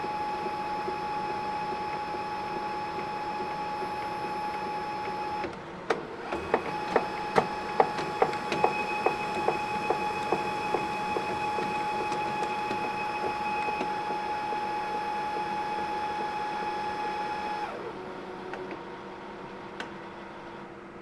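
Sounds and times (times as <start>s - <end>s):
HP LaserJet CP3525dn office printer switching on and initialising: 0.1s - 20.7s.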